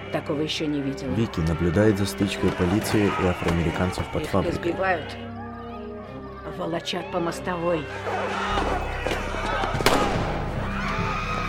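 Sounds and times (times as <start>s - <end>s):
speech: 0.1s - 5.4s, 6.5s - 9.3s
sniper gunshots during a street clash with police and soldiers: 9.7s - 10.5s.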